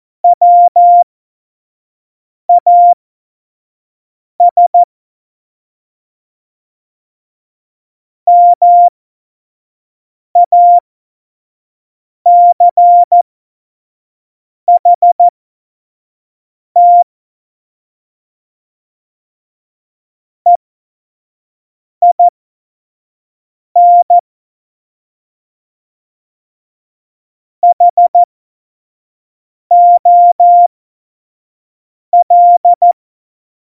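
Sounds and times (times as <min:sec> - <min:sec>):
CW Morse code beeps: 0:00.2 - 0:01.0, 0:02.5 - 0:03.0, 0:04.4 - 0:04.9, 0:08.3 - 0:08.9, 0:10.4 - 0:10.8, 0:12.3 - 0:13.2, 0:14.7 - 0:15.3, 0:16.8 - 0:17.0, 0:22.0 - 0:22.3, 0:23.8 - 0:24.2, 0:27.6 - 0:28.3, 0:29.7 - 0:30.7, 0:32.2 - 0:33.0.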